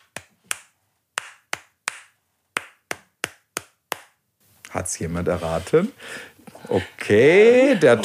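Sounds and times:
hand claps tapping out a festive melody's rhythm: 0.0 - 4.2
speech: 4.7 - 8.0.

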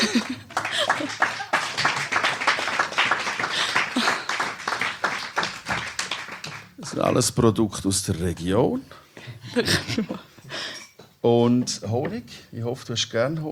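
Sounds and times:
laughter: 0.0 - 2.1, 3.5 - 4.5, 9.4 - 10.4
audience clapping: 0.0 - 7.3
speech: 7.0 - 10.3, 11.2 - 13.4.

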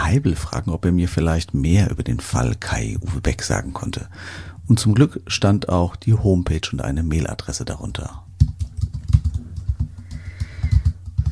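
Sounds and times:
speech: 0.1 - 8.5
typing an email on a computer keyboard: 8.4 - 11.3.

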